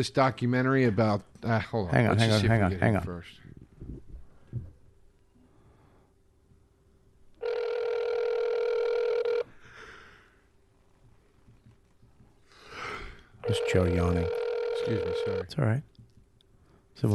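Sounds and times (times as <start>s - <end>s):
speech: 0.0s - 3.4s, 13.5s - 15.9s, 17.0s - 17.1s
ringback tone from an outgoing phone call: 7.4s - 9.5s, 13.4s - 15.5s.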